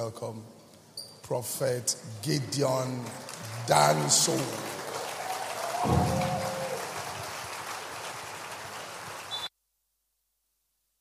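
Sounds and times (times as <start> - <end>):
speech: 0.0 - 0.6, 1.3 - 4.8, 5.8 - 6.4
crowd clapping: 3.0 - 9.5
high whoop: 5.0 - 7.2.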